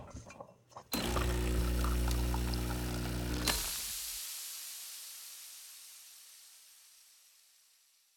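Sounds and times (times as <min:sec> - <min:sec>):
espresso machine running: 0:00.9 - 0:03.9.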